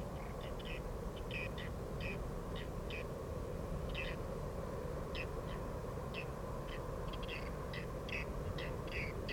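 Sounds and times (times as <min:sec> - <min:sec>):
whiskered tern rasping calls: 0:00.2 - 0:03.1, 0:03.9 - 0:04.2, 0:05.1 - 0:09.3.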